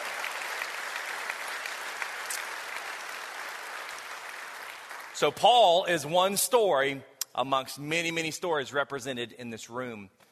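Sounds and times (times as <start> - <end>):
round of applause: 0.0 - 5.5
speech: 5.2 - 10.2.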